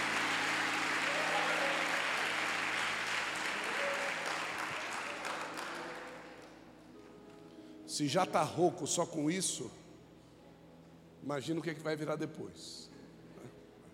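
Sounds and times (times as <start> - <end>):
audience applauding: 0.0 - 6.6
speech: 7.9 - 9.8, 11.3 - 12.9.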